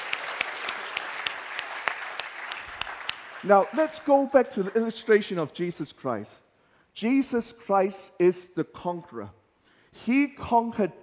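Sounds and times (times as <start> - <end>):
audience clapping hands: 0.0 - 5.4
speech: 3.4 - 6.4, 7.0 - 9.4, 10.0 - 11.0.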